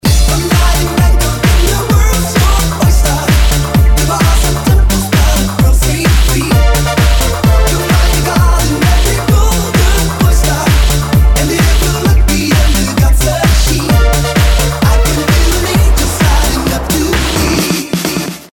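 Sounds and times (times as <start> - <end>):
music beat: 0.0 - 18.5.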